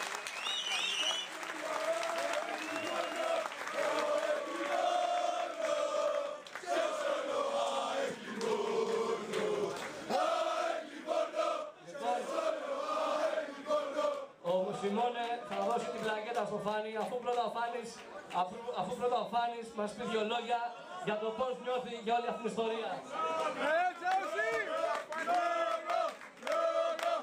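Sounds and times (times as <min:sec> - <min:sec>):
audience applause: 0:00.0 - 0:10.7, 0:23.2 - 0:27.2
crowd cheering or chanting: 0:00.0 - 0:16.4, 0:23.0 - 0:27.2
speech: 0:15.8 - 0:24.6.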